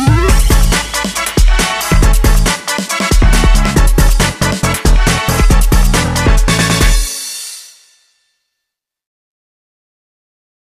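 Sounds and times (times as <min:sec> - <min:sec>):
funny funky freaky music: 0:00.0 - 0:07.7.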